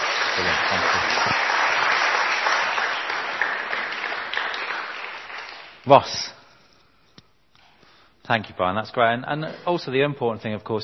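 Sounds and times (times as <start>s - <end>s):
audience applause: 0.0s - 5.9s
speech: 5.9s - 6.3s, 8.3s - 10.8s.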